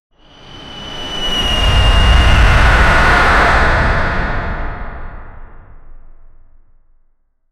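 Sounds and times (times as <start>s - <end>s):
ominous projectile: 1.2s - 6.5s.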